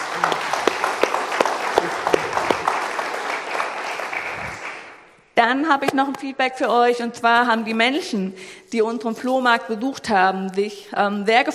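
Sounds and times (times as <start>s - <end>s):
audience clapping: 0.0s - 5.1s
speech: 5.4s - 11.5s.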